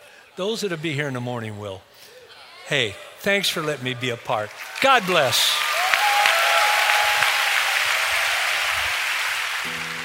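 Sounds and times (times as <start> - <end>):
speech: 0.4 - 2.1, 2.7 - 5.5
audience applause: 3.6 - 10.0.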